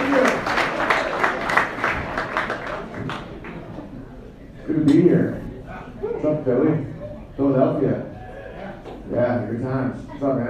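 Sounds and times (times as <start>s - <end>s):
audience applause for a comedian at a show in Philadelphia: 0.0s - 3.8s
crowd noise: 0.0s - 10.4s.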